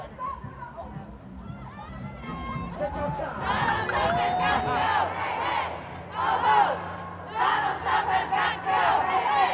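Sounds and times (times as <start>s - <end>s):
crowd chatter: 0.0s - 9.5s
protest crowd chanting on Pennsylvania Avenue passing Trump International Hotel: 3.4s - 9.5s
crowd cheering: 3.8s - 6.8s.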